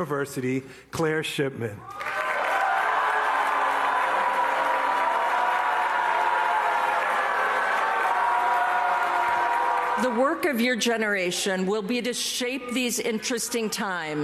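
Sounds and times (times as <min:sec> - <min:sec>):
speech: 0:00.0 - 0:02.1, 0:10.0 - 0:14.2
Columbia University graduation crowd booing and chanting a protest slogan: 0:02.0 - 0:10.4, 0:12.5 - 0:14.2.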